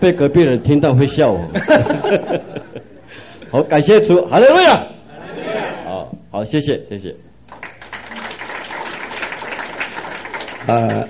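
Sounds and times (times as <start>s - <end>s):
speech: 0.0s - 2.7s, 3.5s - 5.0s, 6.0s - 7.3s, 10.6s - 11.0s
laughter: 1.5s - 3.3s
crowd clapping: 7.5s - 11.0s.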